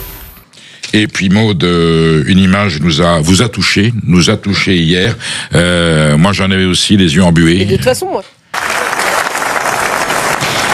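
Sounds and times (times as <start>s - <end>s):
speech: 0.9s - 8.6s
standing ovation applause in Palais du Festival de Cannes: 8.5s - 10.7s.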